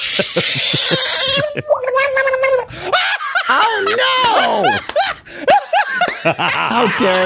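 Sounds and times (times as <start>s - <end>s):
speech: 0.2s - 2.9s, 3.6s - 5.0s, 6.2s - 7.2s
screaming frog in water: 0.6s - 2.6s
laughter: 2.8s - 7.2s.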